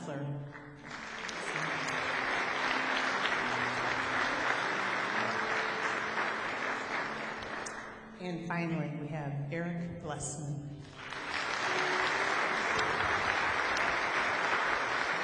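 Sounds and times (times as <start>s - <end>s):
audience applauding: 0.5s - 8.2s, 11.0s - 15.2s
speech: 8.2s - 11.0s.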